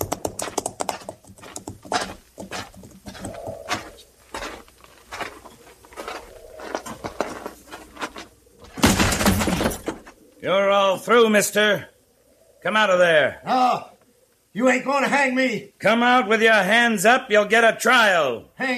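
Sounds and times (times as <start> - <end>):
horses' hooves clip-clopping: 0.0 - 10.2
speech: 10.4 - 11.9, 12.6 - 13.9, 14.6 - 18.7.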